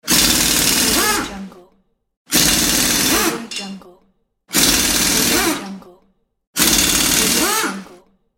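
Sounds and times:
impact wrench: 0.0s - 1.4s, 2.3s - 3.8s, 4.5s - 5.8s, 6.6s - 7.9s.

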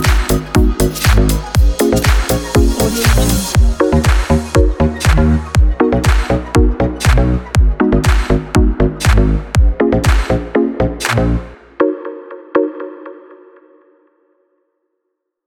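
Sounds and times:
background house dance music: 0.0s - 12.0s.

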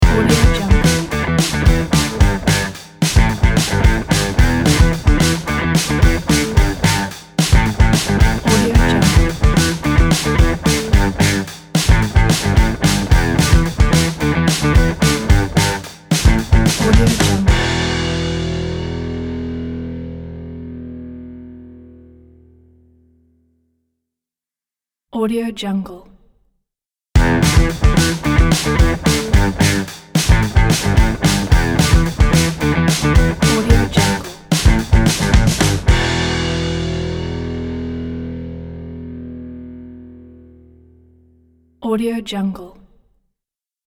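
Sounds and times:
upbeat rock logo music: 0.0s - 21.6s, 27.2s - 40.1s.

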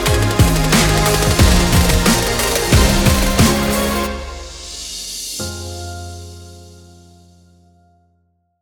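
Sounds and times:
workout music: 0.0s - 5.4s.

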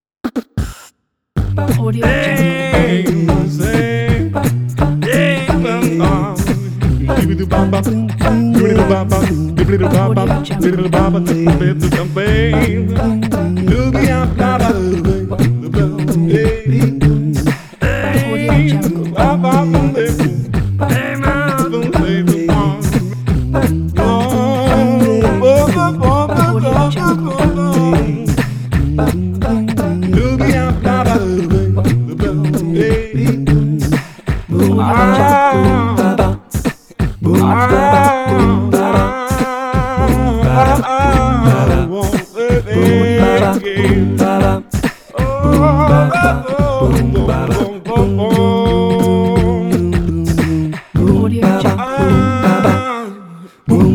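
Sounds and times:
beatbox blues: 0.2s - 53.9s.

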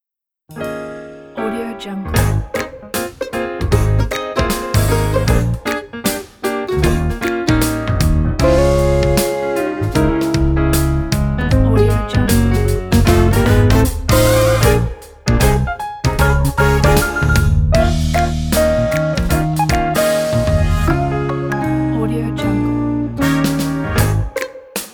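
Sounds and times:
happy good morning music: 0.6s - 24.9s.

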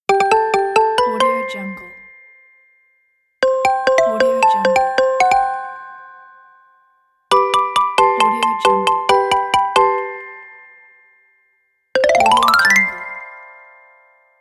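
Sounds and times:
xylophone and marimba notification sounds: 0.1s - 2.2s, 3.4s - 6.0s, 7.3s - 10.6s, 12.0s - 13.0s.

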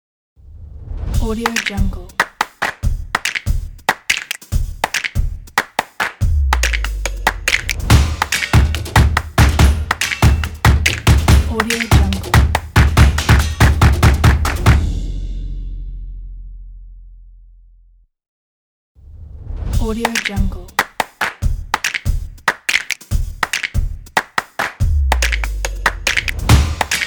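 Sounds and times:
hands clapping in a logo jingle: 1.5s - 14.8s, 20.0s - 27.0s
feet stomping in a logo jingle: 7.5s - 14.8s.

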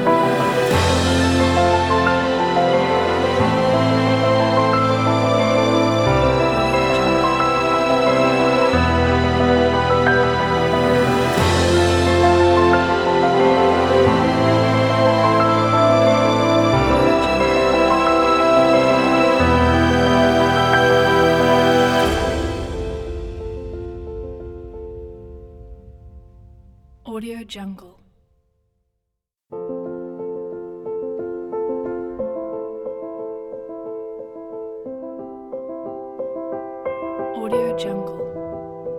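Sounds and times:
emotional piano music: 0.0s - 27.3s, 29.5s - 38.9s.

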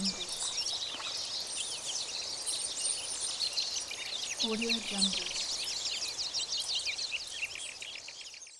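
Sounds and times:
nature sounds: 0.0s - 8.5s.

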